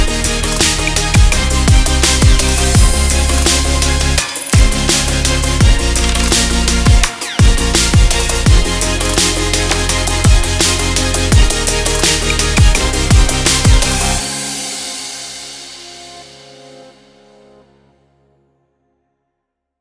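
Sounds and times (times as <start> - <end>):
urban future bass music: 0.0 - 14.5.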